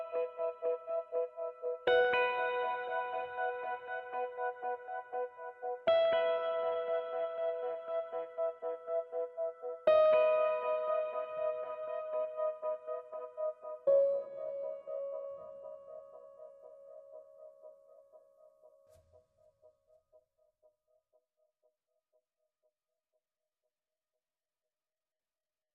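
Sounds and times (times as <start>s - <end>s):
piano: 0.0s - 19.5s.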